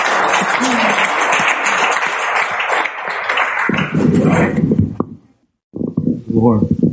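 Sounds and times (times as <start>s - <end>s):
crowd applauding: 0.0s - 4.7s
speech: 0.6s - 1.0s, 6.4s - 6.8s.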